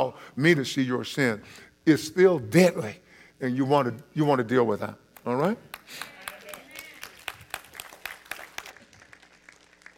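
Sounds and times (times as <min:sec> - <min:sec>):
speech: 0:00.0 - 0:06.2
audience applause: 0:05.8 - 0:09.9.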